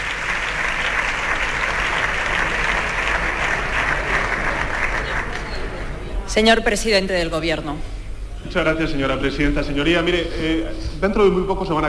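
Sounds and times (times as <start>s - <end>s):
applause in parliament: 0.0s - 6.0s
speech: 6.4s - 11.8s.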